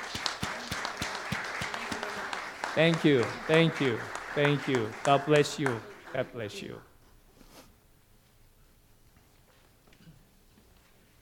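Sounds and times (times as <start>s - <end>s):
congregation clapping in a church: 0.0s - 7.0s
continuous murmur of noise: 0.0s - 7.0s
speech: 2.8s - 6.9s.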